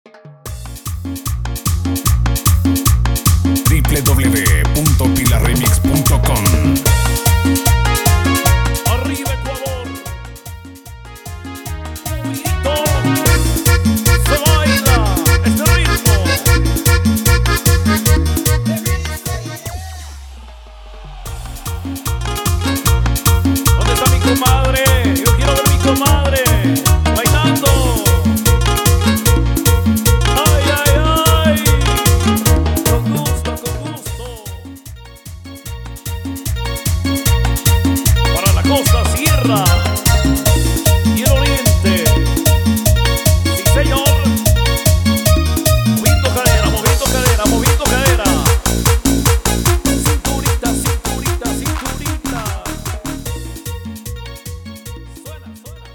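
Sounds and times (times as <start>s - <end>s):
electronic instrumental music: 0.2s - 55.9s.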